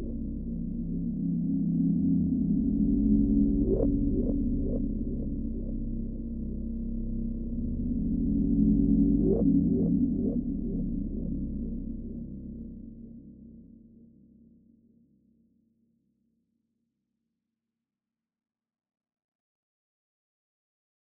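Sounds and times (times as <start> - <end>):
ambience: 0.0 - 13.5.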